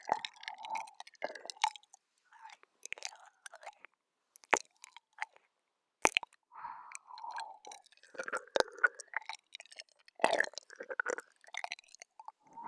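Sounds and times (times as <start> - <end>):
ASMR ear licking: 0.0 - 3.8, 7.3 - 12.4.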